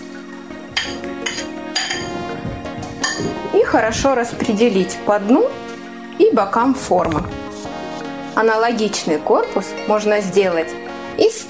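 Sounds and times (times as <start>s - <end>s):
spoon clinking against a bowl stirring melted chocolate: 0.8s - 2.1s
speech: 3.7s - 5.6s, 6.4s - 7.4s, 8.4s - 11.4s.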